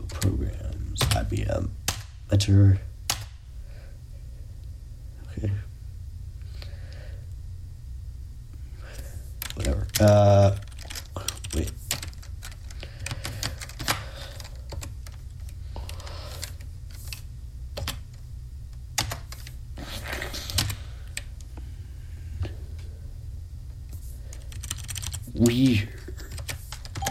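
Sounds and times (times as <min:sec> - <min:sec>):
constant low hum: 0:00.0 - 0:26.3
speech: 0:01.2 - 0:02.9, 0:10.0 - 0:10.6, 0:11.6 - 0:11.8
typing a file path on a computer keyboard: 0:09.4 - 0:17.2, 0:19.0 - 0:19.6, 0:20.5 - 0:21.3, 0:24.3 - 0:25.2, 0:26.2 - 0:27.0.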